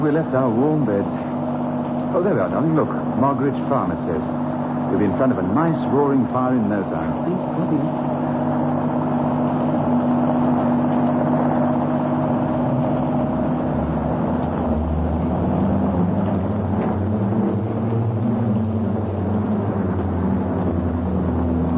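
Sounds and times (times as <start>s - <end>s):
speech: 0.0s - 1.3s, 2.1s - 8.1s
car: 0.0s - 21.7s.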